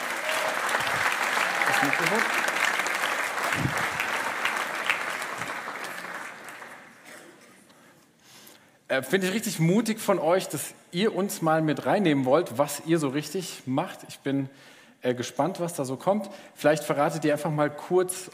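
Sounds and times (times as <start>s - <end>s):
audience applause for volunteers: 0.0s - 7.2s
speech: 1.7s - 2.5s, 8.9s - 18.3s.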